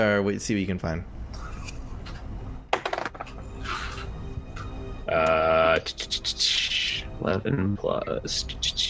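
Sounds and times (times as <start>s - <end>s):
speech: 0.0s - 1.5s, 5.1s - 8.7s
dice rolled for a tabletop role-playing game check: 2.7s - 3.4s.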